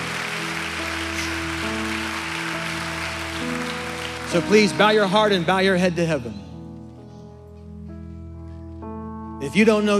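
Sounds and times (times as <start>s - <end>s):
audience applause: 0.0s - 5.5s
sustained keyboard chords: 0.0s - 9.9s
speech: 4.3s - 6.5s, 9.5s - 9.9s.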